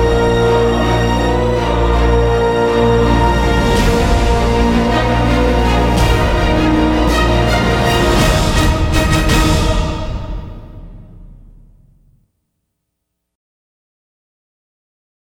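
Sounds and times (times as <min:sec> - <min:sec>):
grand background music: 0:00.0 - 0:12.1.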